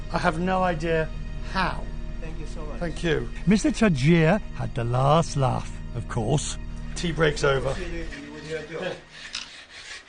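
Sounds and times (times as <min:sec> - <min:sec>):
speech: 0:00.1 - 0:09.3
hand sanding back and forth: 0:07.2 - 0:10.0.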